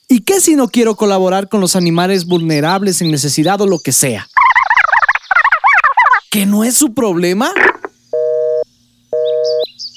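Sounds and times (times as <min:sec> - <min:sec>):
speech: 0:00.1 - 0:04.4, 0:06.3 - 0:07.8
faint chirps: 0:01.5 - 0:09.9
telephone tone after a hung-up call: 0:07.6 - 0:08.6, 0:09.2 - 0:09.7.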